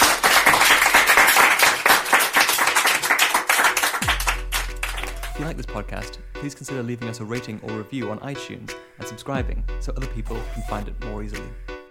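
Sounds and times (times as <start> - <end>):
crowd applauding: 0.0 - 5.5
low sustained musical tone: 4.0 - 11.8
speech: 5.4 - 11.7.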